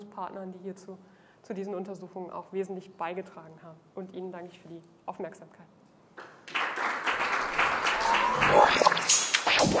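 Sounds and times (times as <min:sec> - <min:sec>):
speech: 0:00.2 - 0:06.3
audience applause after lecture: 0:06.2 - 0:09.7.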